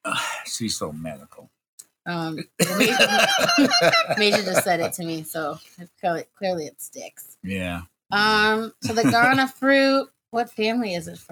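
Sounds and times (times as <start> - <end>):
speech: 0.6 - 11.2
person coughing: 2.6 - 3.3, 8.8 - 9.4
laughter: 2.6 - 5.2, 8.8 - 9.5.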